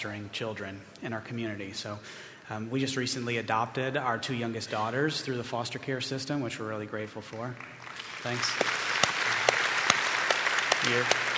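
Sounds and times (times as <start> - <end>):
speech: 0.0 - 8.7, 10.8 - 11.3
audience applause: 7.5 - 11.3.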